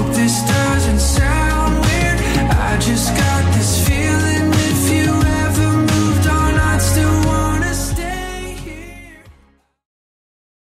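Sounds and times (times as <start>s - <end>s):
pop music track: 0.0s - 9.8s.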